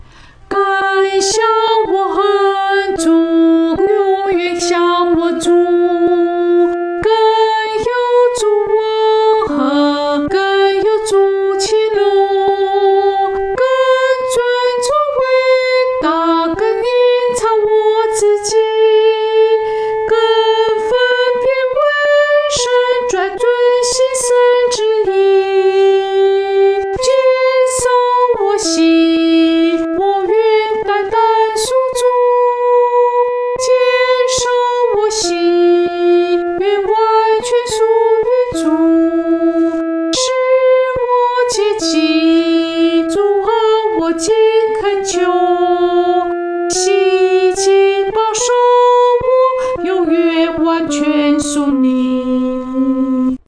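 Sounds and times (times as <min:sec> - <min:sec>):
solo singing voice: 0:00.5 - 0:53.4.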